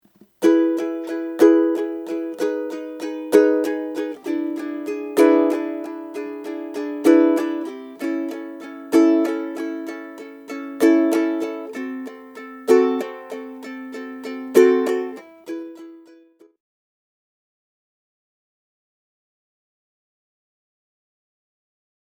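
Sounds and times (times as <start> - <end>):
ukulele strumming: 0.1 - 16.5.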